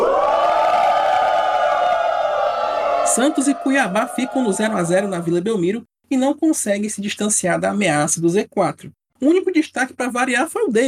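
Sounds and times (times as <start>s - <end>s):
crowd booing jingle: 0.0s - 5.6s
speech: 3.2s - 10.8s.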